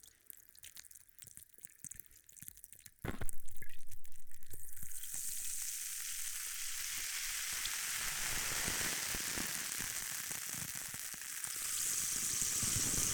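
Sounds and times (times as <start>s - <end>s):
carbonated drink fizzing: 3.1s - 13.1s.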